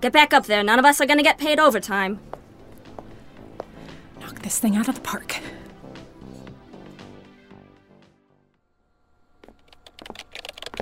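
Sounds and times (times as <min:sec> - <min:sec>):
speech: 0:00.0 - 0:02.4, 0:04.4 - 0:05.6
fingers typing on a computer keyboard: 0:09.6 - 0:10.8.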